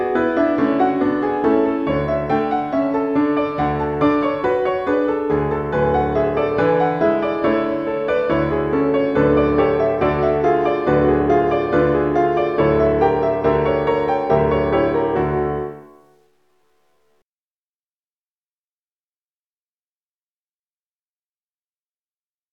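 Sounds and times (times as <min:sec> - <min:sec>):
solo piano: 0:00.0 - 0:17.2.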